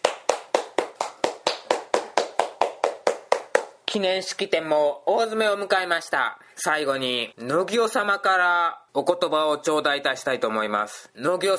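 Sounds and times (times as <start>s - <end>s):
single pair of hands clapping: 0.0s - 4.1s
speech: 3.9s - 11.5s.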